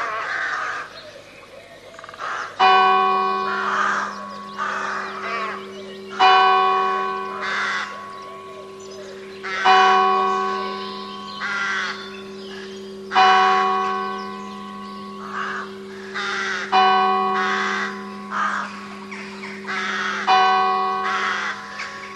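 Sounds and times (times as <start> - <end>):
crow caws: 0.0 - 1.0, 2.0 - 22.1
ringing bell strikes: 2.6 - 22.1.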